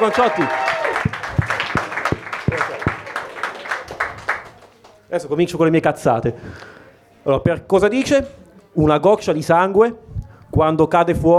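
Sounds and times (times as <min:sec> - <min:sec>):
speech: 0:00.0 - 0:00.6, 0:05.1 - 0:11.3
audience applause: 0:00.0 - 0:05.0.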